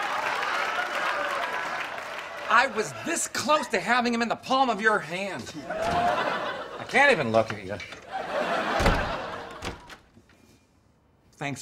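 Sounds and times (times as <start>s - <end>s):
laughter: 0.6s - 3.8s, 5.5s - 10.0s
speech: 2.5s - 8.0s, 11.4s - 11.6s
door slamming shut: 5.8s - 6.2s, 8.7s - 10.1s.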